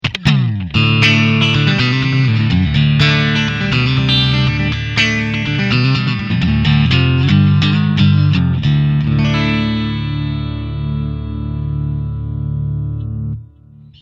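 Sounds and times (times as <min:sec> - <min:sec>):
country music: 0:00.0 - 0:13.8.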